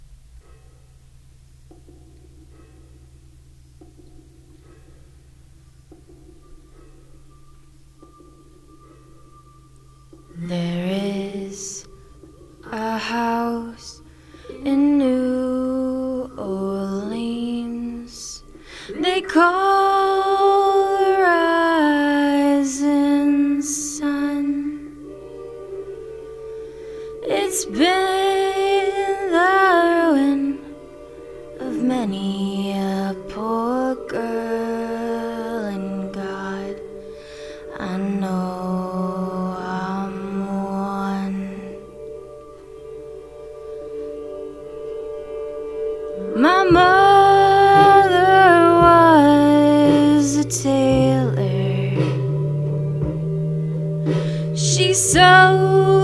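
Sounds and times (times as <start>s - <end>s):
person singing a cover song: 10.3s - 11.9s, 12.6s - 25.0s, 27.2s - 42.2s, 46.0s - 53.3s, 54.1s - 56.0s.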